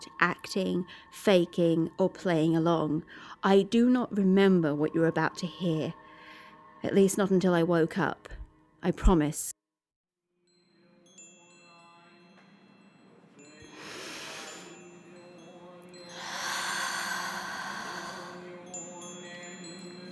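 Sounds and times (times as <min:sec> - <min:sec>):
speech: 0:00.2 - 0:06.0, 0:06.8 - 0:09.6
breathy intake before a sneeze: 0:13.7 - 0:14.9, 0:16.1 - 0:18.4.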